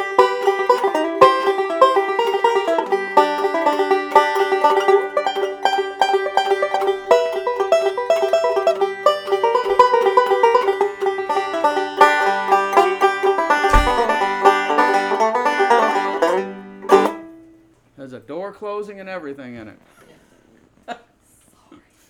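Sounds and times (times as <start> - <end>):
banjo: 0.0 - 17.6.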